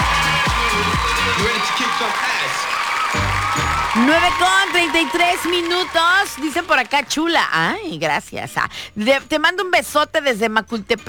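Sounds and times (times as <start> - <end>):
applause: 0.0 - 7.6
speech: 2.0 - 2.8, 4.0 - 11.0.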